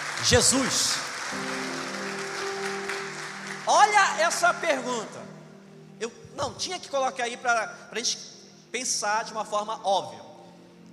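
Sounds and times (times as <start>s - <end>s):
audience applause: 0.0s - 5.2s
speech: 0.2s - 1.9s, 3.7s - 5.3s, 6.0s - 10.3s
sustained low keyboard chord: 1.3s - 6.8s.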